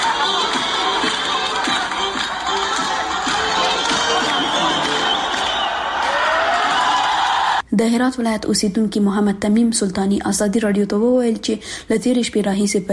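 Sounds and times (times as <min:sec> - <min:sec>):
crowd cheering and shouting celebrating a victory in Herat, Afghanistan: 0:00.0 - 0:07.6
speech: 0:07.8 - 0:12.9.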